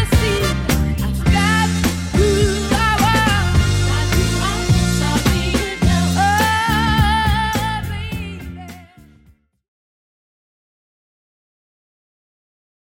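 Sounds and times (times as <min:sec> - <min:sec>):
70s-style music: 0:00.0 - 0:09.4.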